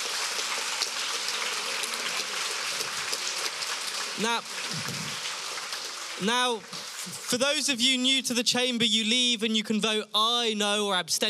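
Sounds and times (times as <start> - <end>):
audience applause: 0.0 - 7.3
speech: 4.2 - 5.2, 6.2 - 11.2.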